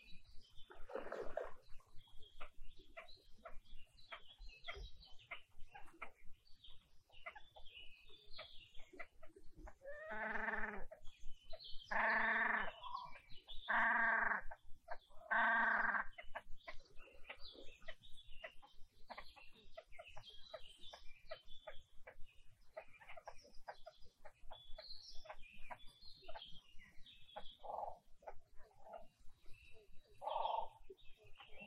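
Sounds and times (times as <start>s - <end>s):
birds singing: 0.0s - 31.6s.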